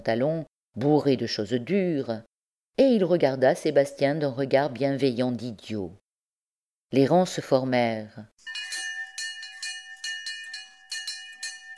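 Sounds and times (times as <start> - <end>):
speech: 0.0 - 6.0, 6.9 - 8.7
bell ringing: 8.4 - 11.7.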